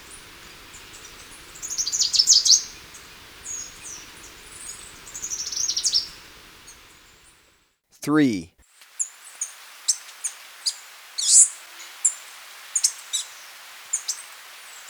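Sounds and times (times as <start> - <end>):
citrine warbler chipping: 0.0 - 7.2
faint hiss: 0.0 - 14.8
speech: 8.1 - 8.5.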